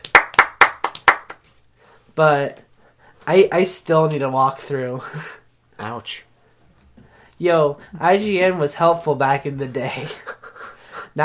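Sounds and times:
hand clapping applause: 0:00.0 - 0:01.5
speech: 0:02.2 - 0:02.6, 0:03.2 - 0:06.3, 0:07.4 - 0:10.3
laughter: 0:09.9 - 0:10.8.

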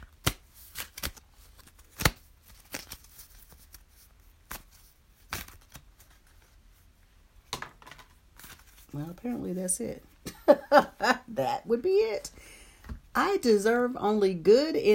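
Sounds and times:
deck of cards being shuffled: 0:00.0 - 0:06.6, 0:07.8 - 0:09.7
speech: 0:09.0 - 0:12.4, 0:13.2 - 0:14.9.

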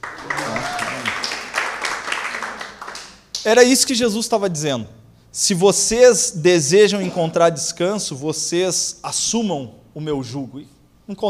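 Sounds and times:
audience applause: 0:00.0 - 0:03.2
speech: 0:03.4 - 0:11.2.

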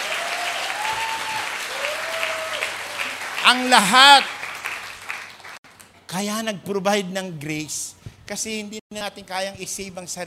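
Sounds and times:
audience applause: 0:00.0 - 0:05.6
speech: 0:03.5 - 0:04.4, 0:06.1 - 0:10.2.

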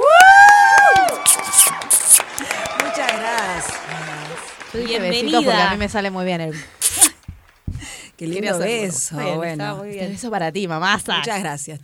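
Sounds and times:
whistles: 0:00.0 - 0:02.5
cheering: 0:00.0 - 0:05.4
audience applause: 0:00.0 - 0:05.7
speech: 0:04.7 - 0:06.8, 0:08.2 - 0:11.8.

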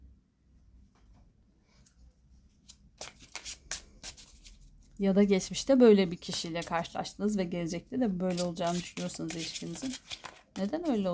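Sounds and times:
tarot cards being shuffled by hand: 0:02.6 - 0:04.6, 0:06.2 - 0:06.9, 0:08.3 - 0:11.1
speech: 0:05.0 - 0:11.1.

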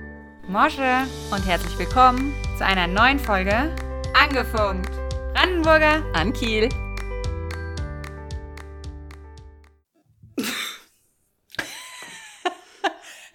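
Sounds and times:
speech: 0:00.5 - 0:06.8
subtle cough: 0:10.3 - 0:11.0.

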